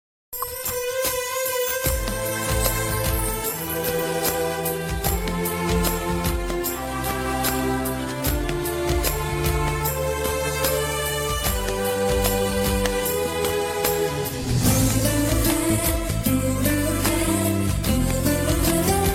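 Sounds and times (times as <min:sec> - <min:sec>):
Tamil love background music ringtone: 0:00.4 - 0:19.1.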